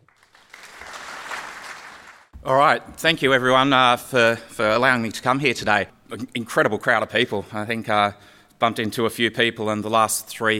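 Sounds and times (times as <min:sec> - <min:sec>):
audience applause welcoming speaker: 0:00.0 - 0:02.3
speech: 0:02.4 - 0:10.5.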